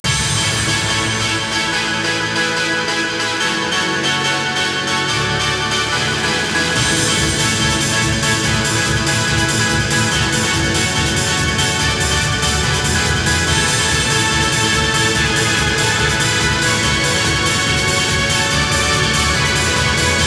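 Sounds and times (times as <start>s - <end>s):
strings in G sharp: 0.0s - 20.2s.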